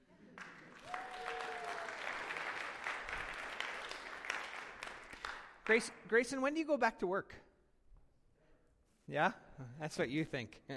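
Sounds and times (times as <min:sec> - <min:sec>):
audience applause: 0:00.4 - 0:05.9
speech: 0:05.7 - 0:07.5, 0:09.1 - 0:10.7.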